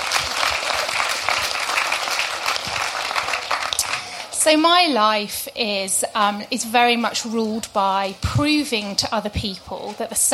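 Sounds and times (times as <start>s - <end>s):
audience applause: 0.0s - 4.4s
speech: 4.4s - 10.3s.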